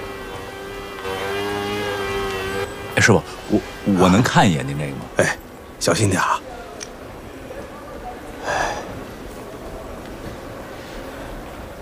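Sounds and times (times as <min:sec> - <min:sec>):
rotary tool polishing and grinding jade: 0:00.0 - 0:05.1
speech: 0:03.0 - 0:06.4.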